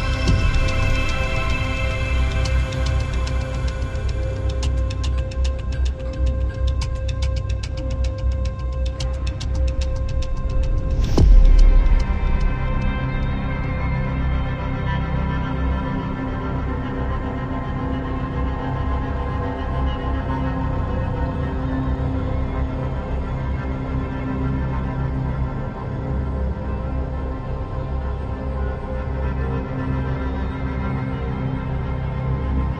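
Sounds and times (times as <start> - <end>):
ambient soundscape: 0.0 - 32.7.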